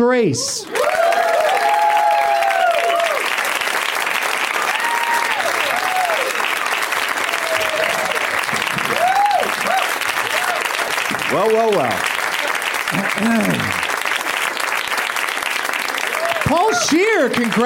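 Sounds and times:
speech: 0.0 - 0.8, 11.3 - 12.1, 12.9 - 13.8, 16.5 - 17.6
audience clapping welcoming guests onto a comedy show: 0.6 - 17.6
cheers and whoops: 0.7 - 3.6, 4.5 - 6.5, 7.2 - 10.9, 15.9 - 17.2
laughter: 11.7 - 14.0.

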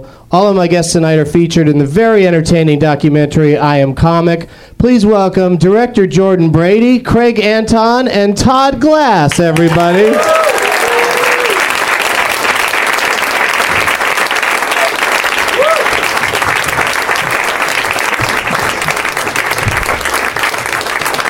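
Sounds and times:
speech: 0.0 - 10.6
audience applause: 9.5 - 21.2.

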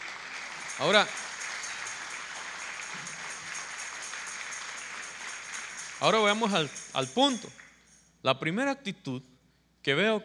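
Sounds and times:
audience clapping: 0.0 - 7.9
speech: 0.8 - 1.2, 6.0 - 7.6, 8.2 - 10.2.

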